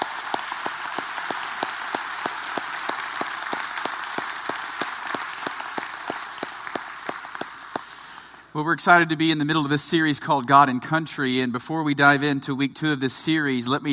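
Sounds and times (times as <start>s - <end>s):
audience applause: 0.0s - 8.5s
speech: 8.6s - 13.9s.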